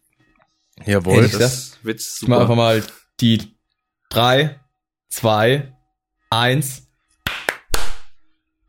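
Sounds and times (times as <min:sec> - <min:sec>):
speech: 0:00.8 - 0:06.8
hand claps for audio sync: 0:07.2 - 0:08.2.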